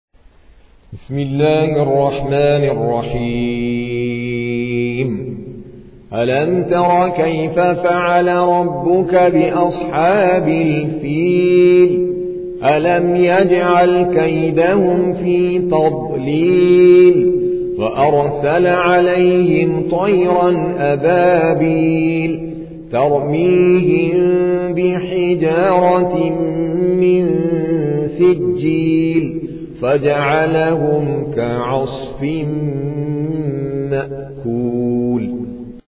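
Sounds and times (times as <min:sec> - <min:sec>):
Quran recitation by an Indian reciter: 0:00.9 - 0:35.8.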